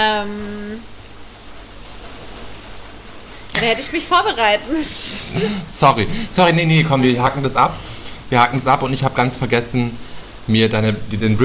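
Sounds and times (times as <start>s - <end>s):
speech: 0.0s - 1.0s, 3.6s - 11.4s
rain: 0.0s - 11.4s
laughter: 4.7s - 6.3s.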